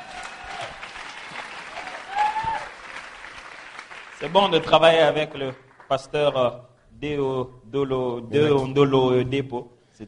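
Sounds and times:
loud cheering shout: 0:00.0 - 0:03.4
church gathering applauding: 0:00.0 - 0:07.0
speech: 0:04.2 - 0:10.0.

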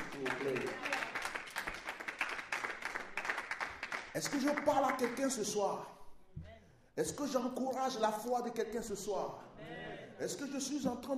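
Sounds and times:
congregation applauding at a French-speaking church service: 0:00.0 - 0:05.6
speech: 0:00.2 - 0:00.9, 0:04.2 - 0:06.0, 0:07.0 - 0:11.1.

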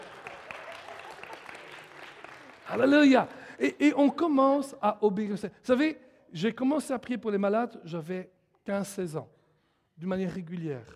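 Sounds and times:
faint applause from a congregation during a church service: 0:00.0 - 0:02.9
speech: 0:02.7 - 0:09.4, 0:10.0 - 0:10.9.

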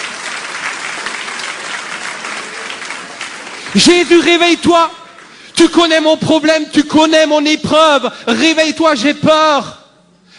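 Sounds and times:
audience applause: 0:00.0 - 0:05.6
speech: 0:03.7 - 0:05.0, 0:05.6 - 0:09.8.

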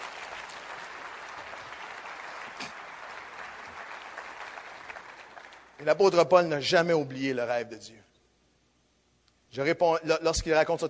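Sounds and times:
audience applause: 0:00.0 - 0:05.8
speech: 0:05.8 - 0:08.1, 0:09.5 - 0:10.8.

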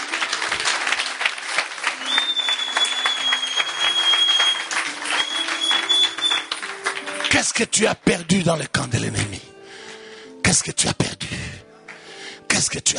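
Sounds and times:
audience applauding: 0:00.0 - 0:07.8
speech: 0:07.5 - 0:09.5, 0:10.6 - 0:11.4, 0:12.7 - 0:12.9.

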